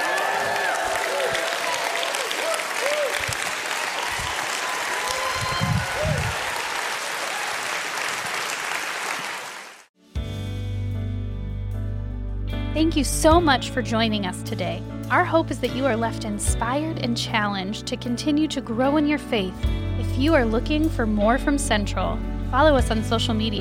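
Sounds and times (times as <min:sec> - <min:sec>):
church congregation cheering and applauding at worship: 0:00.0 - 0:09.9
music: 0:10.0 - 0:23.5
speech: 0:13.0 - 0:23.5.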